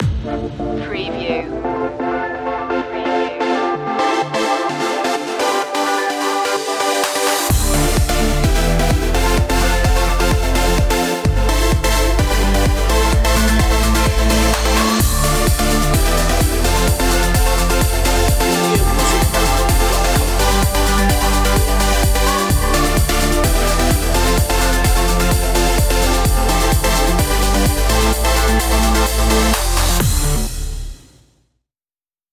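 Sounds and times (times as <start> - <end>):
trance music: 0.0 - 31.0.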